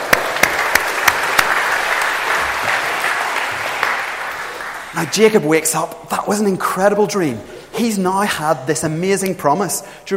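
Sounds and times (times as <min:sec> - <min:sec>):
audience applause: 0:00.0 - 0:05.2
speech: 0:05.0 - 0:10.1.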